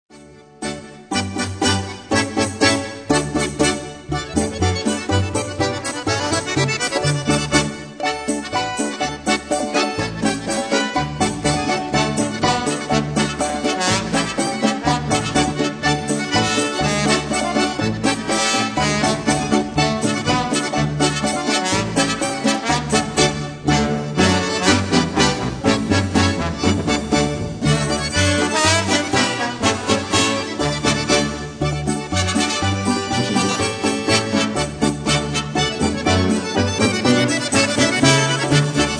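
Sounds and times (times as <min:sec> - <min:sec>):
instrumental music: 0:00.1 - 0:38.9.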